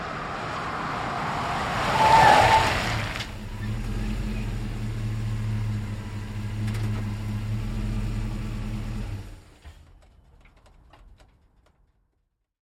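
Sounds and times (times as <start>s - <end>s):
GMC Savana truck stopping fast with light screech: 0.1s - 10.0s.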